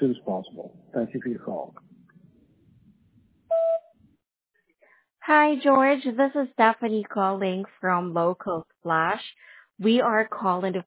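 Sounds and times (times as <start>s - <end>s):
speech: 0.0s - 1.9s, 5.3s - 10.8s
voicemail recording tone: 3.5s - 3.9s.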